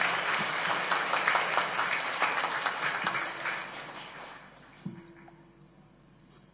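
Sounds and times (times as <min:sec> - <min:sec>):
audience applause: 0:00.0 - 0:05.4.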